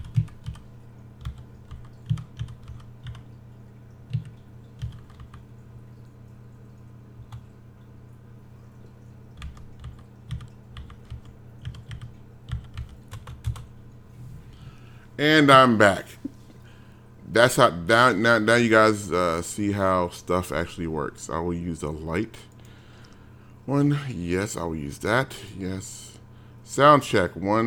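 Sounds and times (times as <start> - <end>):
typing a Skype name on a computer keyboard: 0.0 - 3.3, 4.1 - 6.0, 7.2 - 7.5, 9.3 - 13.7
speech: 15.2 - 16.2, 17.4 - 22.5, 23.7 - 26.1, 26.7 - 27.6.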